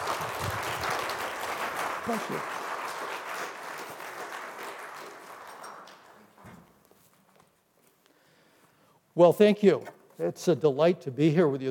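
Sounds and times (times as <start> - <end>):
church congregation at Hillsboro First Baptist applauding a guest speaker: 0.0 - 6.4
speech: 2.1 - 2.6, 9.2 - 11.6.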